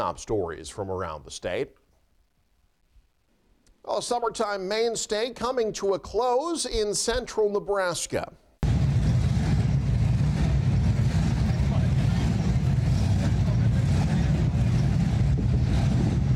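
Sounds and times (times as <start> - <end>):
speech: 0.0 - 1.8, 3.8 - 8.4
classic hot rod engines revving: 8.6 - 16.3.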